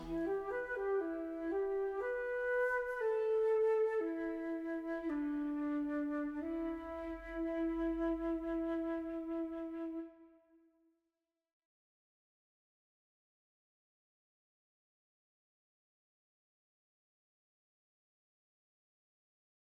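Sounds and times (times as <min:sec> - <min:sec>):
Greek Cypriot lullaby with flute: 0:00.0 - 0:10.5.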